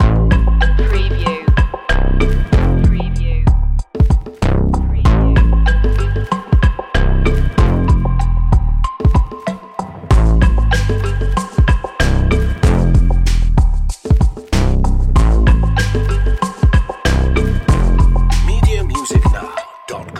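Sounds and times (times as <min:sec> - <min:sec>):
trap beat loop: 0:00.0 - 0:14.3, 0:15.2 - 0:20.1.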